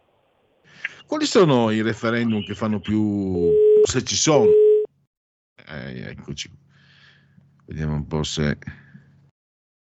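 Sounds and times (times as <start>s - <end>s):
speech: 1.1s - 4.6s, 5.7s - 6.7s, 7.7s - 8.8s
telephone busy signal beep: 3.5s - 4.9s.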